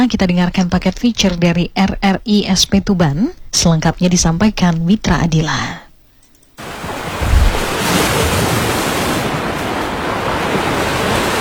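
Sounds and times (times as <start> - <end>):
speech: 0.0 - 5.8
wind: 0.0 - 11.3
sea surf washing onto a coastal beach: 6.6 - 11.3.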